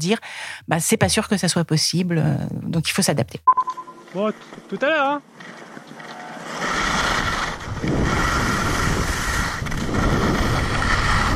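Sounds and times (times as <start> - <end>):
speech: 0.0 - 6.0
wind on a red ski run at Combloux: 3.5 - 11.3
skis rushing on snow on a red ski run at Combloux: 5.3 - 11.3.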